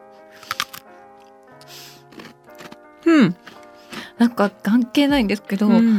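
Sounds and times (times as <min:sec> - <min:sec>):
crunching rice crackers while eating: 0:00.4 - 0:00.9, 0:01.6 - 0:04.2
speech: 0:03.0 - 0:03.6, 0:04.2 - 0:05.9.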